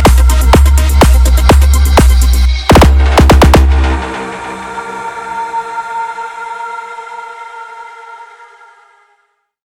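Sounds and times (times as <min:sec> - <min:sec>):
extreme bass: 0:00.0 - 0:06.2.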